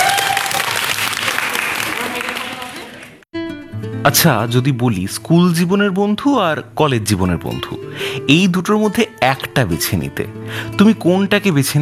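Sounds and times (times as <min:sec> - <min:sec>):
audience applause for the winning quiz team at a college event: 0:00.0 - 0:03.2
speech: 0:04.0 - 0:11.8.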